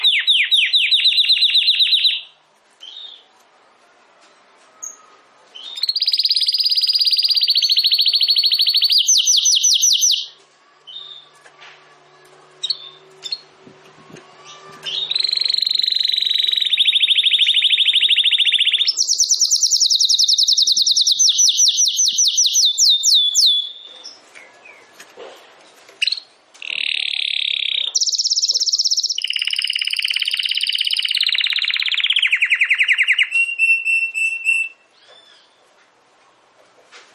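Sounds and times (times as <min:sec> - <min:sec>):
domestic canary singing trills: 0:00.0 - 0:03.3, 0:04.8 - 0:11.4, 0:14.3 - 0:25.1, 0:26.0 - 0:35.6.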